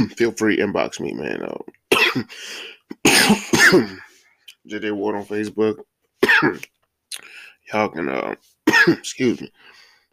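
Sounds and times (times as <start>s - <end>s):
speech: 0.0s - 4.1s, 4.7s - 9.7s
smoker's harsh hacking cough: 1.9s - 4.2s, 6.2s - 6.7s, 8.6s - 9.1s.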